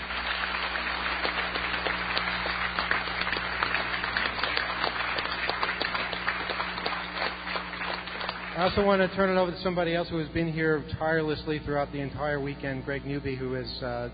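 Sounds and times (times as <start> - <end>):
audience applauding the hotel: 0.0 - 9.4
speech: 8.6 - 14.1.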